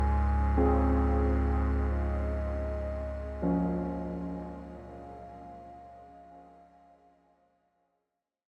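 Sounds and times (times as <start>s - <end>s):
house bass on a synthesizer: 0.0s - 6.4s.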